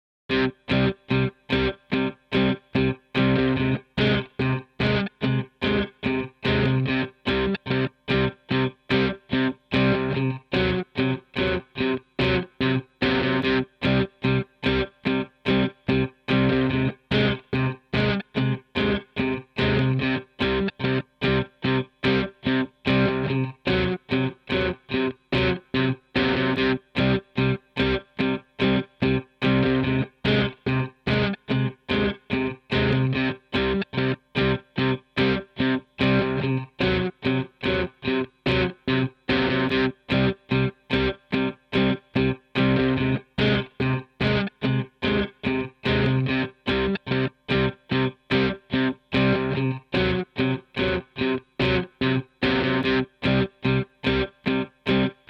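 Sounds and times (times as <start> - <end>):
guitar loop: 0.3 - 55.2.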